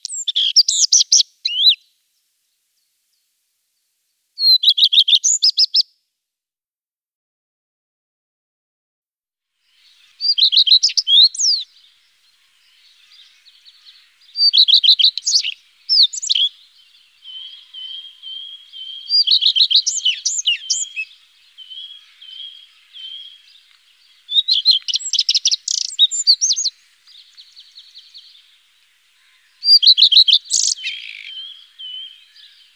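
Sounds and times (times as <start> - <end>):
common redstart singing: 0.0 - 1.9, 9.6 - 32.7
other birds chirping: 0.0 - 3.2, 9.6 - 32.7.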